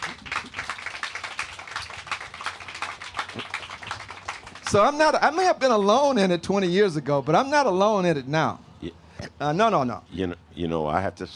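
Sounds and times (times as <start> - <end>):
audience applause: 0.0 - 5.1
speech: 4.7 - 11.3.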